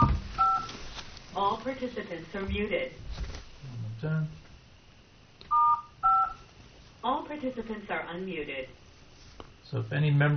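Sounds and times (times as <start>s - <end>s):
speech: 1.4s - 3.3s, 4.0s - 4.4s, 7.0s - 8.8s, 9.7s - 10.3s
telephone keypad tones from pressing star 5 on a conference call: 5.5s - 6.4s.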